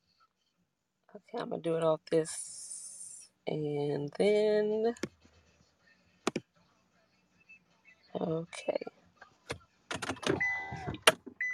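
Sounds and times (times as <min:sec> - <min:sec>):
speech: 0:01.1 - 0:02.6, 0:03.4 - 0:05.1, 0:08.2 - 0:09.0
thumps and clicks inside a car: 0:09.5 - 0:11.5.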